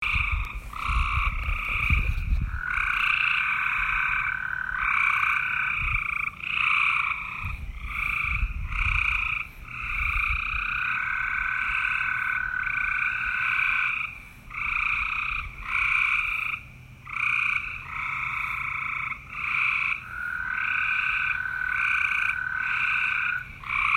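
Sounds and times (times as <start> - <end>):
frogs croaking in a dense chorus: 0.0 - 23.9.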